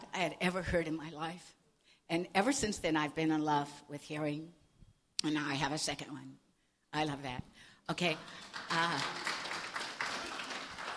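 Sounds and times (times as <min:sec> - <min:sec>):
speech: 0:00.2 - 0:04.6, 0:05.2 - 0:09.3
audience applause: 0:08.3 - 0:10.9.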